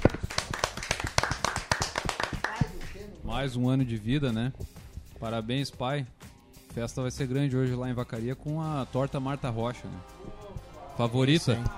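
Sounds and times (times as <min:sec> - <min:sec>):
small group applause with hands clapping: 0:00.0 - 0:03.1
speech: 0:03.3 - 0:06.2, 0:06.8 - 0:10.1, 0:11.0 - 0:11.7.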